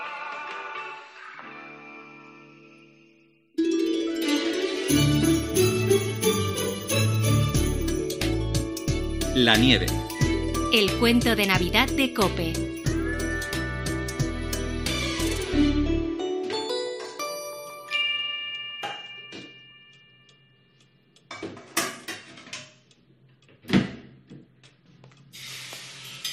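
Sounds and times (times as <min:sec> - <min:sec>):
music: 0:00.0 - 0:20.8
speech: 0:04.9 - 0:05.2, 0:09.4 - 0:10.0, 0:10.7 - 0:12.7
pots, pans and utensils clinking while eggs are fried: 0:21.3 - 0:22.8.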